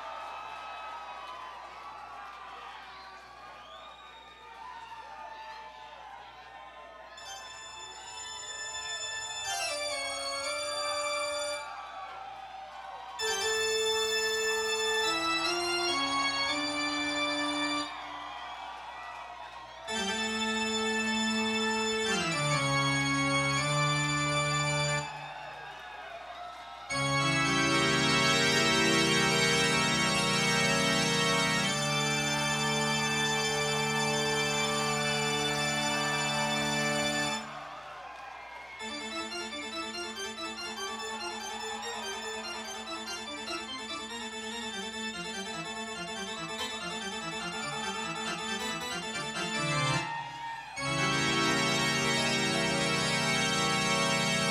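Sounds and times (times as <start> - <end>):
classical piece: 7.6 - 11.6, 13.2 - 17.9, 19.9 - 25.1, 26.9 - 37.5, 38.8 - 50.1, 50.8 - 54.4.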